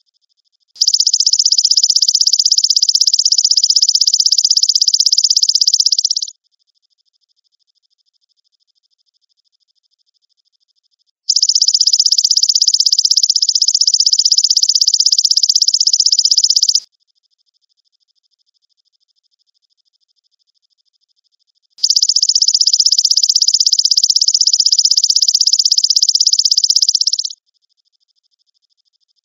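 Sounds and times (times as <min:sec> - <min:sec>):
grasshopper trilling: 0:00.8 - 0:06.3, 0:11.3 - 0:16.8, 0:21.8 - 0:27.4.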